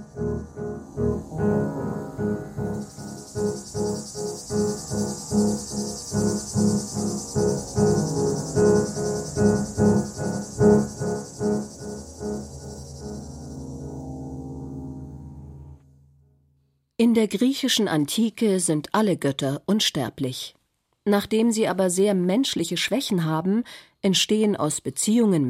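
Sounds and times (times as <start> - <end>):
cicada chirping: 0.0 - 15.6
speech: 17.1 - 25.4.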